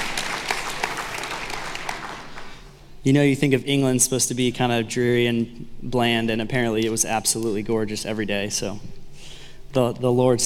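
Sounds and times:
church congregation applause: 0.0 - 2.8
speech: 3.0 - 9.0, 9.7 - 10.4.

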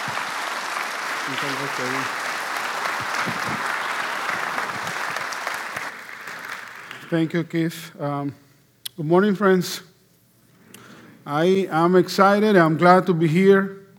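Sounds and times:
audience applause: 0.0 - 7.3
speech: 1.3 - 2.2, 3.2 - 3.8, 7.1 - 8.4, 9.0 - 9.9, 11.2 - 13.8.

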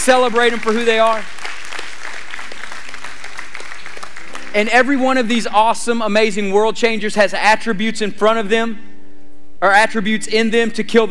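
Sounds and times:
speech: 0.0 - 1.4, 4.5 - 8.9, 9.6 - 11.1
audience hand clapping: 0.0 - 5.5.

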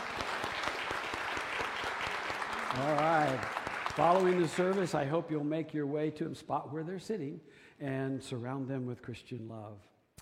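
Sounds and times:
church congregation at Aldersgate applauding a welcome: 0.0 - 5.5
speech: 2.7 - 9.9.

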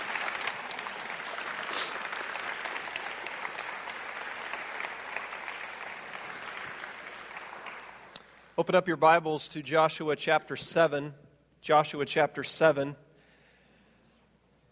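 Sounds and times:
audience applause: 0.0 - 8.2
speech: 8.6 - 13.0.

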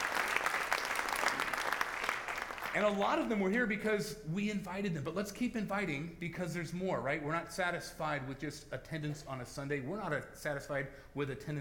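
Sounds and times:
audience clapping: 0.0 - 3.4
speech: 2.8 - 11.5.

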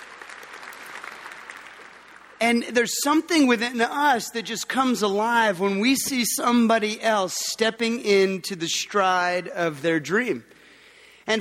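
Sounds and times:
audience applause: 0.0 - 2.4
speech: 2.4 - 10.6.

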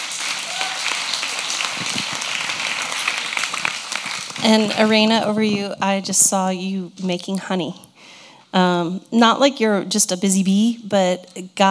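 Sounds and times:
audience clapping: 0.0 - 5.2
speech: 4.4 - 7.9, 8.5 - 11.7.

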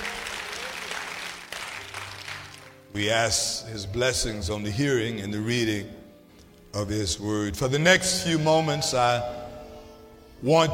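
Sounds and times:
crowd clapping: 0.0 - 3.0
speech: 3.0 - 6.0, 6.8 - 9.4, 10.4 - 10.7.

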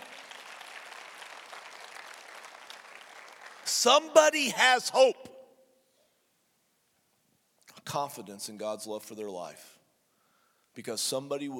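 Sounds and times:
crowd clapping: 0.0 - 4.2
speech: 3.7 - 5.2, 7.9 - 9.8, 10.8 - 11.5.

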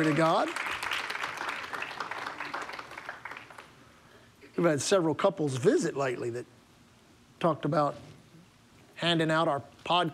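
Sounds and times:
speech: 0.0 - 0.7, 4.6 - 6.5, 7.4 - 8.1, 9.0 - 10.1
audience clapping: 0.0 - 3.8.

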